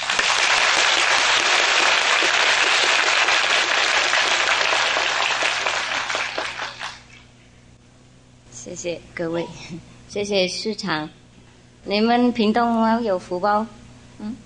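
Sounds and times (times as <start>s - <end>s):
warm audience applause: 0.0s - 7.1s
speech: 8.7s - 11.2s, 11.8s - 14.4s.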